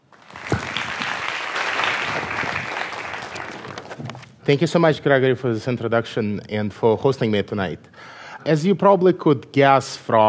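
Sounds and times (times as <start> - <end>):
audience applause welcoming writer Evgeny Morozov to a talk on internet freedom: 0.0 - 4.0
speech: 4.5 - 10.2.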